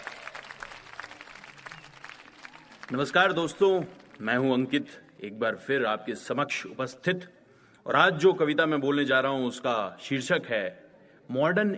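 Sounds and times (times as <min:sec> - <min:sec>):
audience applause welcoming a poet: 0:00.0 - 0:04.3
speech: 0:02.9 - 0:11.7.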